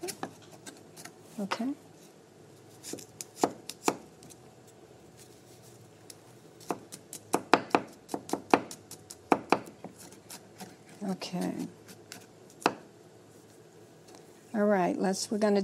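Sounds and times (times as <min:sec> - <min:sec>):
speech: 0:01.4 - 0:01.9, 0:02.9 - 0:03.1, 0:11.1 - 0:11.8, 0:14.6 - 0:15.6
knife chopping food on a cutting board: 0:02.8 - 0:04.0, 0:06.6 - 0:10.8.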